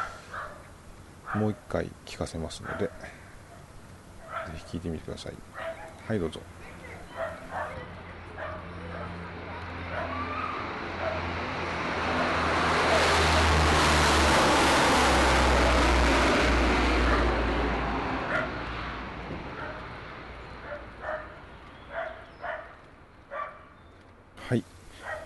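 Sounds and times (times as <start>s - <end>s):
airplane roaring at Futenma air base: 0.0s - 0.8s, 6.9s - 22.2s
short bark-like yelps: 1.3s - 1.6s, 2.6s - 4.6s, 5.6s - 6.0s, 6.7s - 7.8s, 8.4s - 11.3s, 18.3s - 18.6s, 20.7s - 22.7s, 23.3s - 23.7s, 25.0s - 25.2s
speech: 1.4s - 3.2s, 4.6s - 6.6s.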